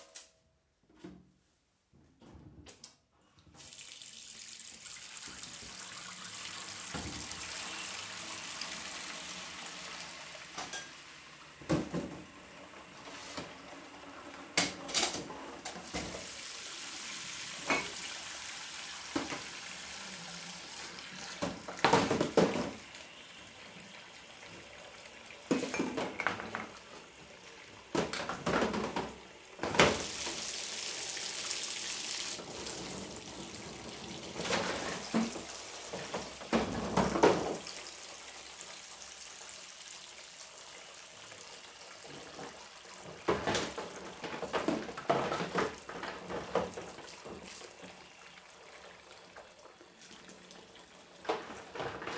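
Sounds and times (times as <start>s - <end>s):
dishes being washed up: 3.5s - 52.1s.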